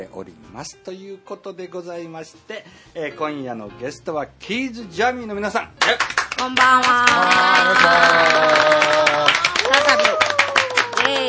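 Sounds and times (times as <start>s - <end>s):
speech: 0.0s - 10.0s
applause from four guests: 5.8s - 11.2s
voices cheering: 6.9s - 11.2s.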